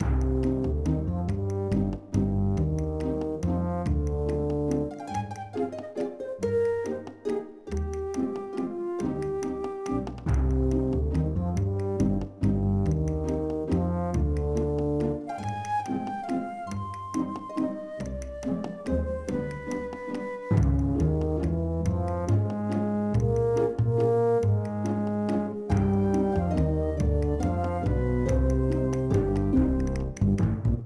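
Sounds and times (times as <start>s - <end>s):
music loop: 0.2s - 30.8s.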